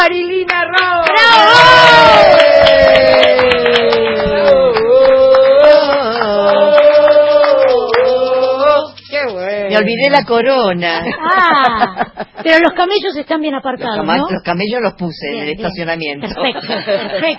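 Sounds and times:
scattered clapping: 0.5 - 8.8
crowd cheering and whooping: 1.0 - 8.8
speech: 9.8 - 17.3
laughter: 11.0 - 12.8, 16.2 - 17.3.

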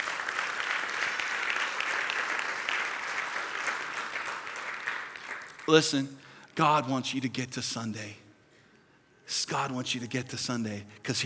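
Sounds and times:
audience applause: 0.0 - 6.0
speech: 5.7 - 8.2, 9.3 - 11.2.

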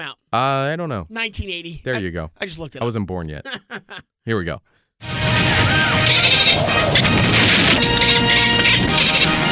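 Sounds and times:
speech: 0.0 - 9.0
dolphin-like movie gopher chattering effect: 6.0 - 7.1, 7.8 - 9.4.

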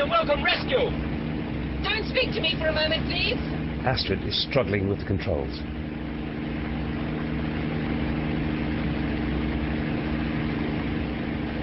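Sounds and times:
helicopter engine: 0.0 - 11.6
speech: 2.1 - 5.8.

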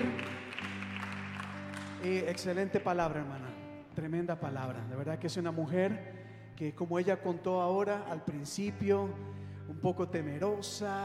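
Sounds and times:
audience applauding: 0.0 - 2.7
speech: 2.0 - 11.0.

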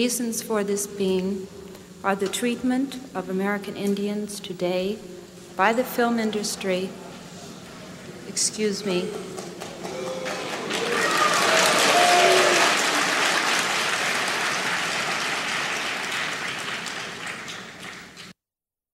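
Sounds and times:
speech: 0.0 - 7.0, 8.4 - 9.5
audience booing: 9.6 - 16.4.

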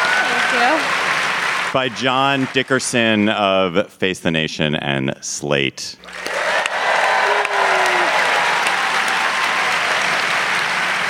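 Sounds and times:
live theater audience applauding: 0.0 - 3.3, 6.1 - 11.0
speech: 1.7 - 6.5.

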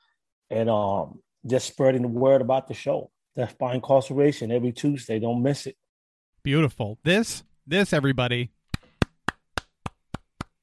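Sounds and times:
speech: 0.5 - 5.8, 6.4 - 8.6
hand clapping: 8.7 - 10.6.

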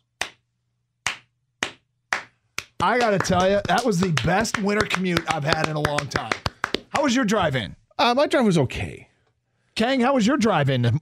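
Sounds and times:
slow handclaps for snowplow drivers: 0.1 - 0.4, 1.0 - 7.2
speech: 2.8 - 6.4, 7.0 - 9.1, 9.8 - 11.0.

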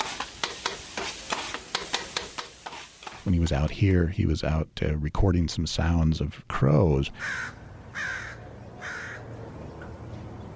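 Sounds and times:
street vendor grilling chicken: 0.0 - 3.4
speech: 3.3 - 8.1.

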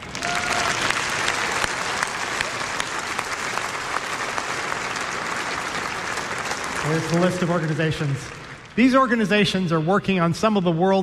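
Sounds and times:
audience applause welcoming selected organizations: 0.0 - 8.8
speech: 6.9 - 11.0.

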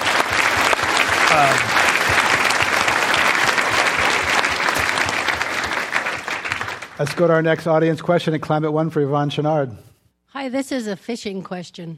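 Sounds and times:
audience applause at a live talk event: 0.0 - 7.9
speech: 1.3 - 1.8, 7.0 - 11.9.

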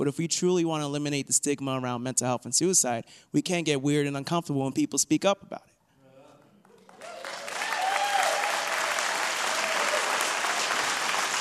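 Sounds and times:
speech: 0.0 - 5.8
audience clapping: 6.6 - 11.3.

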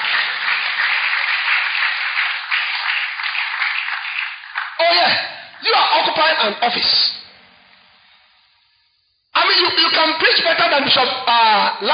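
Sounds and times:
crowd clapping: 0.0 - 6.3
speech: 5.7 - 7.2, 10.4 - 11.9.

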